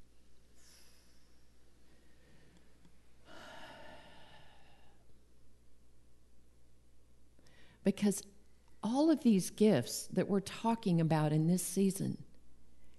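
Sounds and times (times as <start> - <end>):
group taking a deep breath during a church talk: 1.9 - 5.0
speech: 7.8 - 12.3.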